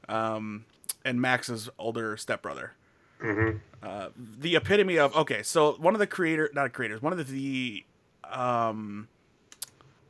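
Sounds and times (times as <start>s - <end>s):
speech: 0.1s - 9.1s
person humming: 3.2s - 3.8s
computer mouse clicking: 9.5s - 9.8s.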